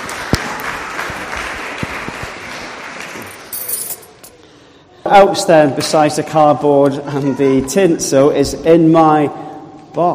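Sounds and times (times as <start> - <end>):
audience applause: 0.0 - 3.5
speech: 5.1 - 9.4, 10.0 - 10.1.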